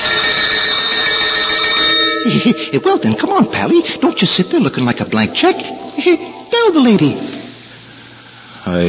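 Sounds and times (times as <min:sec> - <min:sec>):
bells ringing: 0:00.0 - 0:05.8
speech: 0:02.4 - 0:07.4, 0:08.7 - 0:08.8.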